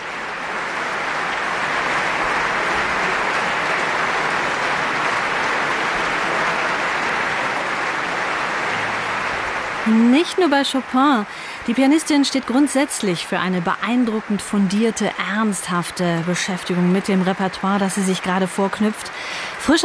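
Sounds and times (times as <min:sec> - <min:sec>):
concert audience applauding: 0:00.0 - 0:19.8
speech: 0:09.9 - 0:19.8.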